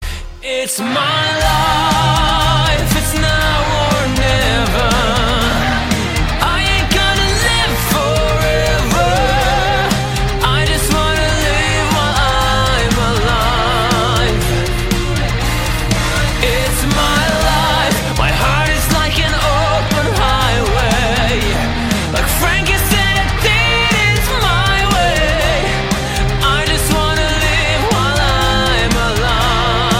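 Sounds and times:
metal music: 0.0 - 29.9.

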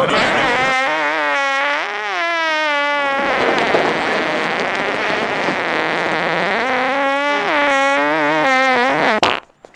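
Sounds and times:
fart: 0.1 - 9.5.

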